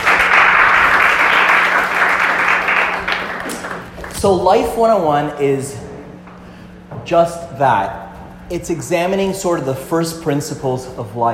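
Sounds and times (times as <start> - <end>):
audience applause: 0.0 - 4.2
speech: 4.2 - 5.8, 7.1 - 11.3.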